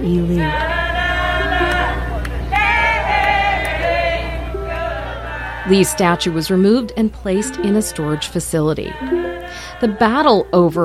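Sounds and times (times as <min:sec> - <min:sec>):
speech: 0:00.0 - 0:00.7, 0:05.7 - 0:10.8
crowd murmur: 0:00.0 - 0:09.9
outdoor crowd shouting and cheering: 0:00.6 - 0:06.4.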